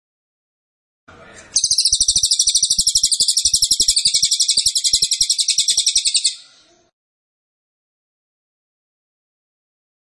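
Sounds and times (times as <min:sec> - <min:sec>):
Cililin trilling song: 0:01.4 - 0:06.8.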